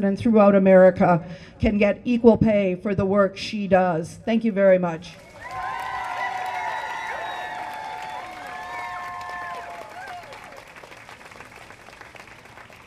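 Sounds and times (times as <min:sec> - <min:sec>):
speech: 0:00.0 - 0:05.8
crowd applauding: 0:05.2 - 0:12.8.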